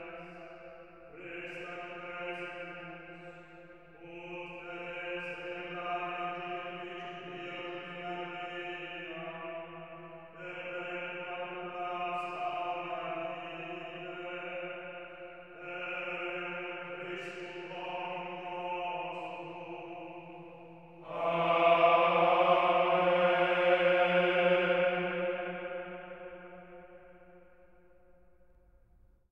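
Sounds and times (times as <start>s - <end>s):
oratio chant singing with alleluia: 0.0s - 27.4s.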